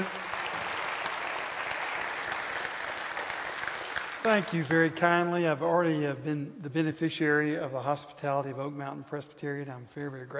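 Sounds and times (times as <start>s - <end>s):
church audience applause at Oak Mountain Presbyterian welcoming a guest speaker: 0.0s - 5.1s
speech: 4.2s - 10.3s.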